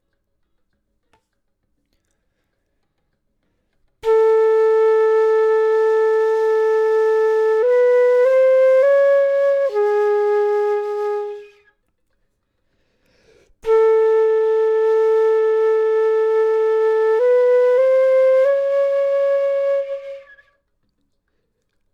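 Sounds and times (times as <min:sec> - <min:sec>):
flute: 0:04.0 - 0:11.8, 0:13.5 - 0:20.7.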